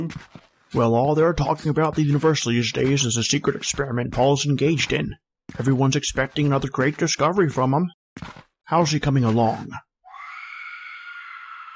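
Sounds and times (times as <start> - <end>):
speech: 0.0 - 9.9
woman screaming: 10.1 - 11.7.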